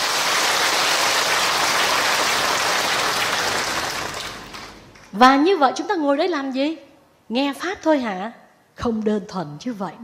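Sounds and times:
Buddhist audience at a dharma talk clapping: 0.0s - 5.1s
speech: 5.2s - 10.0s.

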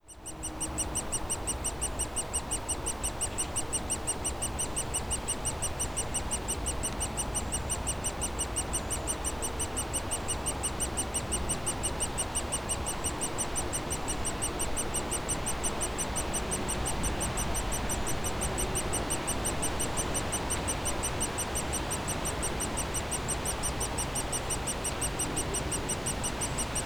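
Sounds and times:
woodpecker nestlings chirping from their cavity in a dead tree trunk: 0.0s - 26.8s.

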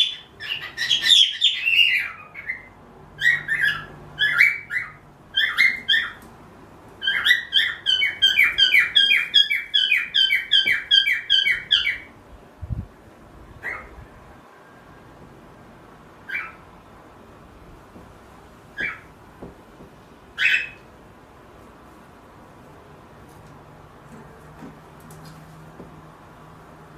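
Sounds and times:
Pearl cockatiel harsh chirps: 0.0s - 6.2s, 7.0s - 12.1s, 16.3s - 16.6s, 18.8s - 19.1s, 20.4s - 20.8s.

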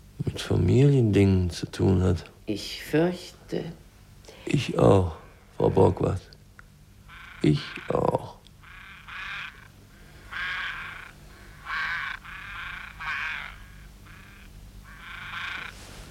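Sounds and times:
speech: 0.4s - 3.8s, 4.5s - 6.3s, 7.4s - 8.4s
ravens croaking: 4.3s - 16.0s.

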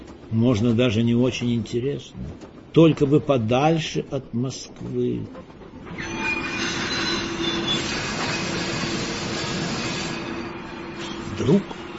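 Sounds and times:
speech: 0.3s - 5.6s, 11.4s - 11.8s
train car brakes screeching: 6.0s - 11.9s.

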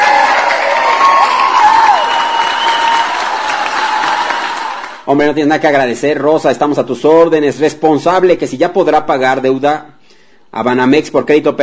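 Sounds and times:
applause and cheering: 0.0s - 5.1s
speech: 5.1s - 9.9s, 10.5s - 11.6s.

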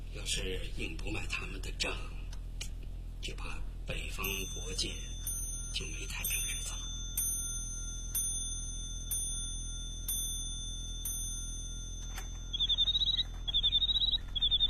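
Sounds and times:
speech: 0.1s - 2.2s, 3.3s - 5.1s, 5.7s - 6.9s
bird-song clock mechanical chirping trills: 4.2s - 14.6s
bird-song clock ringing bell-like dings: 4.2s - 14.6s.

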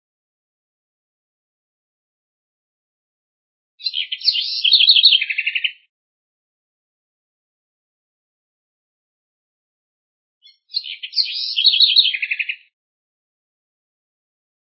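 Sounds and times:
house wren singing: 3.8s - 5.9s, 10.4s - 12.7s.

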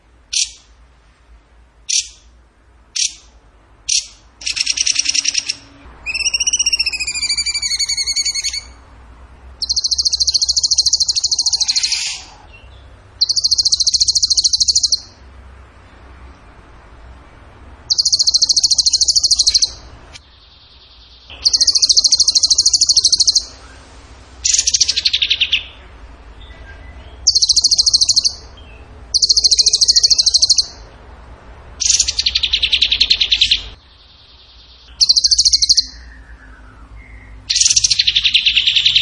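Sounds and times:
bird buzzy trills: 1.8s - 2.3s, 2.9s - 8.9s, 9.6s - 15.3s, 17.8s - 26.0s, 27.2s - 30.9s, 31.8s - 38.9s
faint lower chirp: 3.9s - 8.8s, 9.6s - 15.3s, 17.9s - 23.9s, 24.5s - 30.9s, 31.8s - 38.9s.

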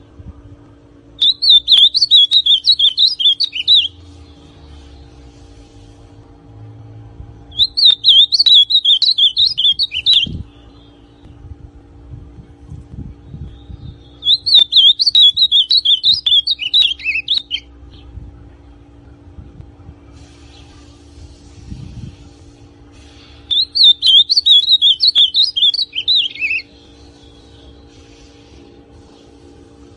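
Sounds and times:
ultramarine grosbeak song: 1.2s - 5.1s, 7.5s - 11.3s, 13.3s - 18.0s, 23.0s - 29.3s.

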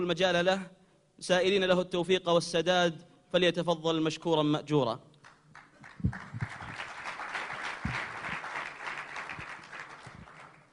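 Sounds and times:
speech: 0.0s - 5.1s
audience clapping at an Islamic lecture: 5.2s - 10.7s.

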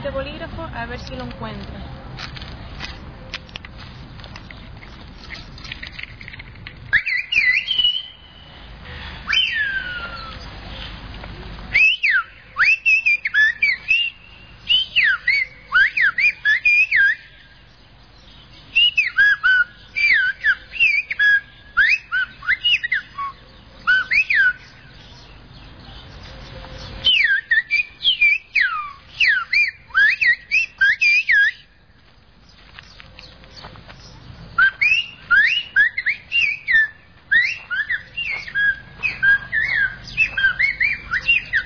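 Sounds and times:
speech: 0.0s - 2.4s
Silbo Gomero whistled language message: 6.9s - 8.5s, 9.3s - 10.5s, 11.7s - 17.5s, 18.7s - 24.8s, 27.0s - 31.7s, 34.5s - 41.6s.

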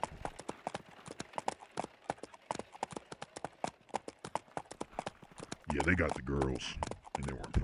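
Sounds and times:
horses clip-clopping while pulling a wagon around Devil's Tower: 0.0s - 7.6s
speech: 5.7s - 7.6s.

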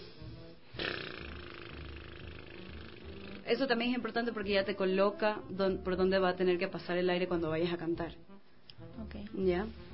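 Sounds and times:
lip trill vocal exercise: 0.8s - 3.5s
speech: 3.5s - 8.3s, 9.4s - 9.8s.

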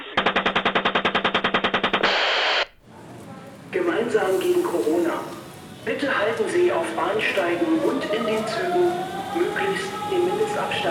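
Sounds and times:
machine gun fire: 0.0s - 2.3s
speech: 4.1s - 10.8s.

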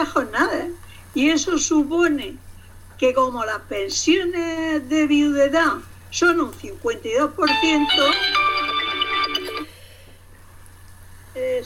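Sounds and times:
speech: 0.0s - 8.4s
phone ringtone: 7.5s - 9.8s.

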